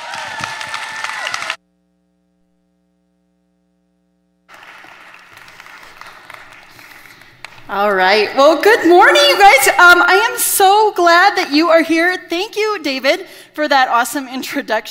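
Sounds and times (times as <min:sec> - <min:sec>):
church congregation clapping welcoming a speaker: 0:00.0 - 0:01.6, 0:04.5 - 0:07.9
faint hum: 0:01.5 - 0:13.7
speech: 0:07.7 - 0:14.8.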